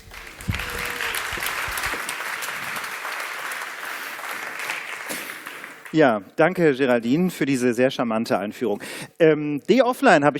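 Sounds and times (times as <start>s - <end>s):
audience applause: 0.0s - 6.0s
speech: 5.9s - 10.3s.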